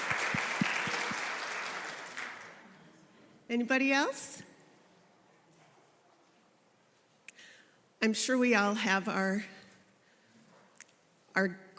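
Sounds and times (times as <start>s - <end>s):
audience clapping: 0.0s - 2.8s
speech: 3.5s - 4.4s, 8.0s - 9.6s, 11.4s - 11.7s.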